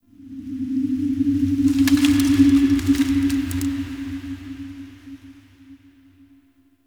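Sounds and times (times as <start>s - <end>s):
Zariman park wind: 0.0s - 6.0s.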